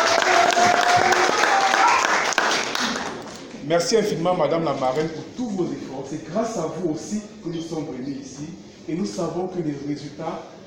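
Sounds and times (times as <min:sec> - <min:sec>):
audience applause: 0:00.0 - 0:03.5
speech: 0:03.7 - 0:10.6.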